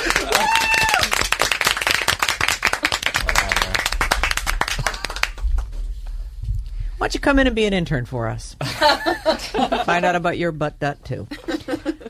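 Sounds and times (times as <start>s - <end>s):
audience clapping: 0.0s - 6.0s
speech: 7.0s - 11.5s.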